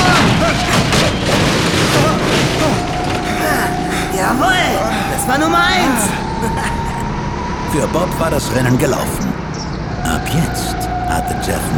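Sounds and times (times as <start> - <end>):
kart crashing into stacked tires: 0.0 - 3.3
laughter: 0.0 - 7.1
speech: 7.8 - 9.4, 10.2 - 11.7.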